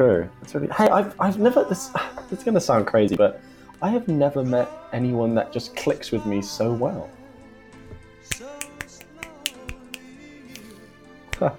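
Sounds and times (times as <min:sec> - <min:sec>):
speech: 0:00.0 - 0:07.2, 0:11.4 - 0:11.5
finger snaps: 0:08.3 - 0:11.5.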